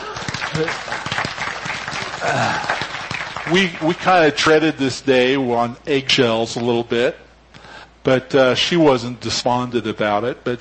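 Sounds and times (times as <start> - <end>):
people clapping: 0.0 - 4.6
speech: 0.6 - 1.1, 2.2 - 2.7, 3.5 - 7.2, 8.0 - 10.6.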